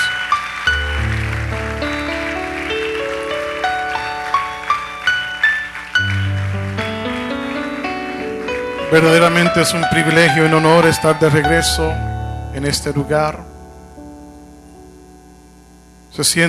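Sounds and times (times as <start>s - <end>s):
audience applause: 0.0s - 11.3s
sustained keyboard chords: 0.0s - 16.2s
rising bass line: 0.7s - 3.0s, 6.1s - 14.8s
speech: 8.9s - 13.5s, 16.2s - 16.4s.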